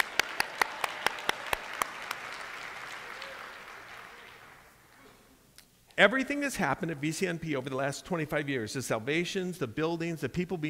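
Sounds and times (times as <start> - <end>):
church audience clapping: 0.0 - 5.0
speech: 6.0 - 10.6.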